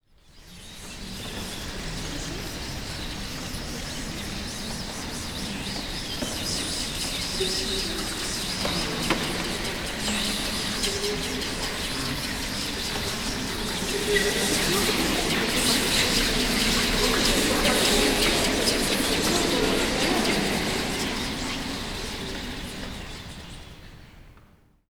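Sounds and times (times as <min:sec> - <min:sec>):
chatter: 0:00.5 - 0:24.0
laughter: 0:08.7 - 0:23.1.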